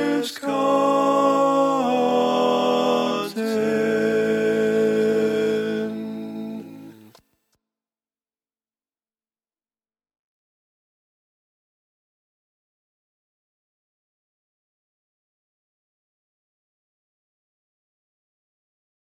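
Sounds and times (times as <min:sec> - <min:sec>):
lead vocal learning track: 0:00.0 - 0:07.2.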